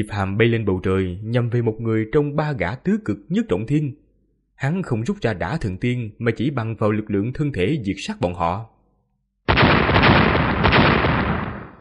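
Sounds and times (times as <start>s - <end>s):
speech: 0.0s - 4.0s, 4.6s - 8.7s
explosions: 9.5s - 11.7s.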